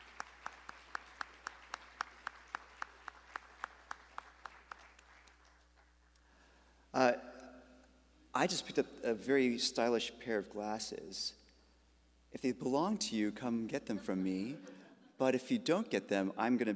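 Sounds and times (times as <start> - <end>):
audience applause: 0.0 - 5.9
speech: 8.4 - 11.4, 12.4 - 16.7.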